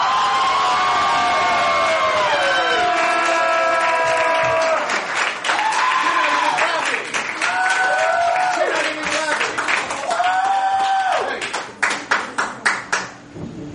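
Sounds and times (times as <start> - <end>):
shrill whoops and cheers: 0.0 - 9.0, 9.9 - 11.4
crowd applause: 0.0 - 13.2.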